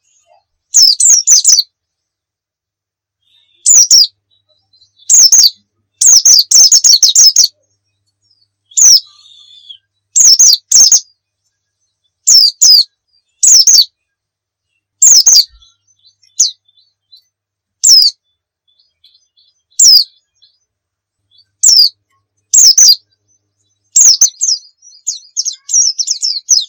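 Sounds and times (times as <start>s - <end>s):
white-eye song: 0.8s - 1.6s, 3.6s - 4.1s, 5.0s - 7.5s, 8.7s - 11.0s, 12.3s - 13.9s, 15.0s - 16.6s, 17.8s - 18.1s, 19.0s - 20.5s, 21.6s - 21.9s, 22.5s - 23.0s, 24.0s - 26.6s.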